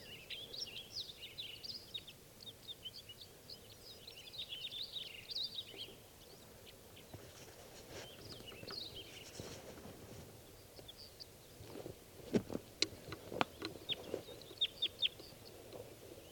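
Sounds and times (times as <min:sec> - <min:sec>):
birds calling near a net: 0:00.0 - 0:07.3, 0:08.0 - 0:09.6, 0:12.8 - 0:16.3
sharp clicking knocks: 0:12.3 - 0:13.8.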